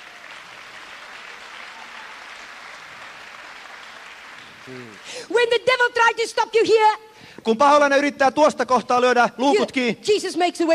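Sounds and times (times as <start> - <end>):
audience clapping for Jesus: 0.0 - 5.3
speech: 4.7 - 10.7.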